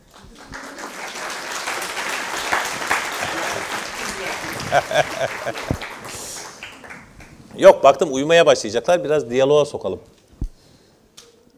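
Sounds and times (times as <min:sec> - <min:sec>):
audience applause: 0:00.0 - 0:07.6
laughter: 0:00.5 - 0:06.5
speech: 0:04.7 - 0:06.2, 0:07.6 - 0:10.1.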